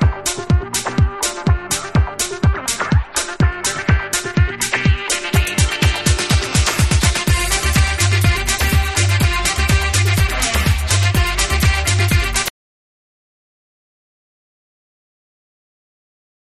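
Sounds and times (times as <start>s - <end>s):
afro groove dub mix music: 0.0s - 12.5s.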